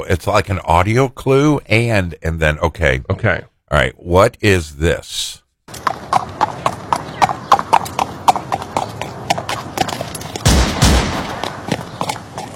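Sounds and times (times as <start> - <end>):
speech: 0.0 - 6.5
horse hooves clip-clopping for a mock Amish drive-by shooting: 5.7 - 12.5
gunfire burst: 10.4 - 11.6.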